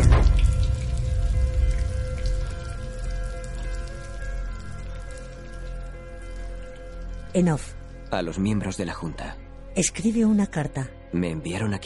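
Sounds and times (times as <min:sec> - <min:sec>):
water gushing from a broken wall pipe: 0:00.0 - 0:07.3
speech: 0:07.4 - 0:11.8.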